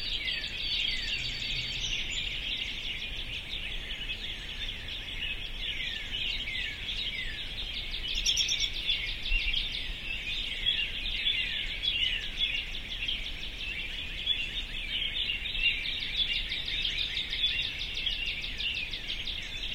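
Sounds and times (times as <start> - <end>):
birds singing in a dense chorus: 0.0 - 19.7.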